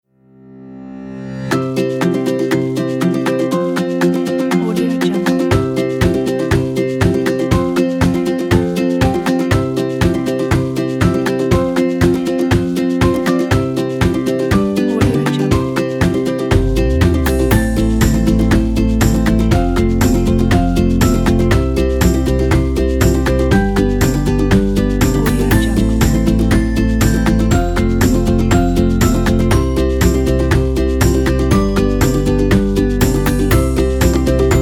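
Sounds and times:
happy music: 1.2 - 34.6.

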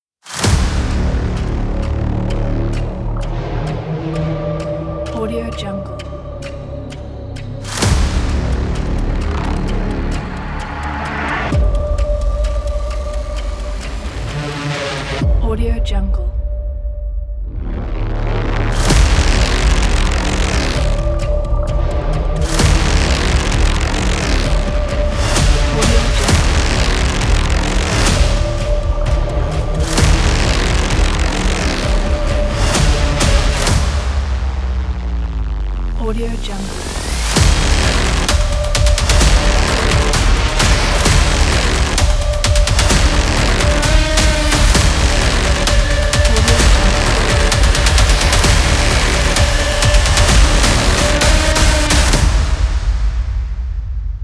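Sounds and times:
aggressive action trailer music: 0.2 - 54.2.

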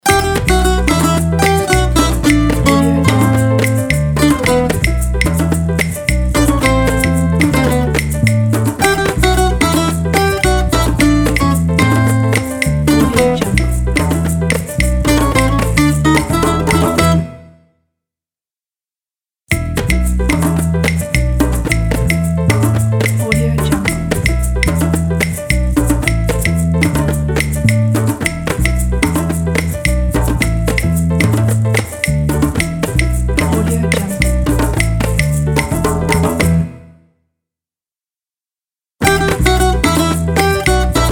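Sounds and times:
hot Cuban summer music: 0.0 - 17.7, 19.5 - 37.0, 39.0 - 41.0.

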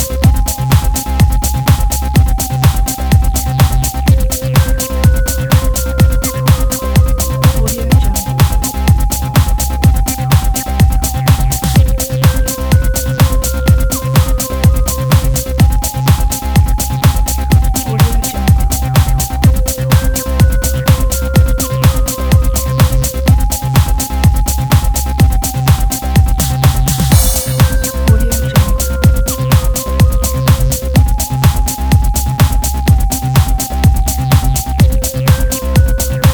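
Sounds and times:
techno house music: 0.0 - 36.3.

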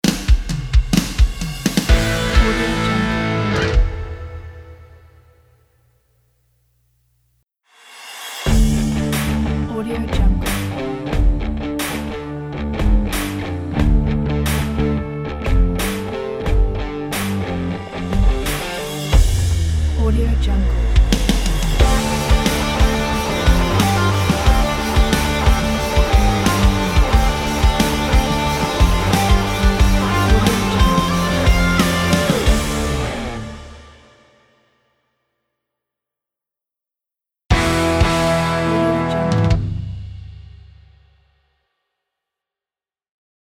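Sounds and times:
upbeat intense rock logo music: 0.0 - 4.8, 8.5 - 34.1, 37.5 - 40.1.

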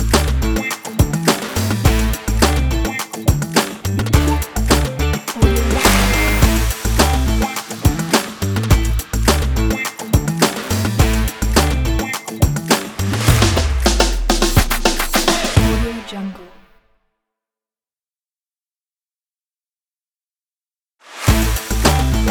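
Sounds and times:
funk background music: 0.0 - 16.3, 21.3 - 22.3.

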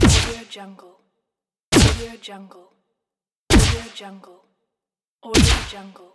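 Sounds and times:
magic blasts: 0.0 - 0.4, 1.8 - 2.1, 3.5 - 3.9, 5.4 - 5.8.

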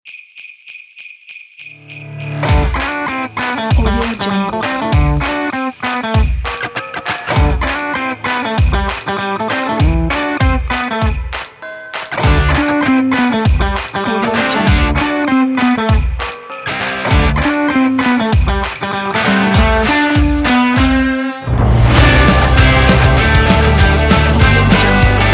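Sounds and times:
christmas rock music: 1.8 - 25.3.

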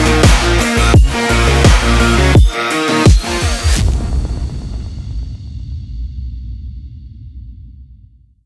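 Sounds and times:
epic cyberpunk game stream music: 0.0 - 5.4.

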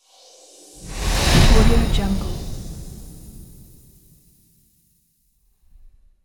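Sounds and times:
fast whoosh: 0.4 - 4.0.

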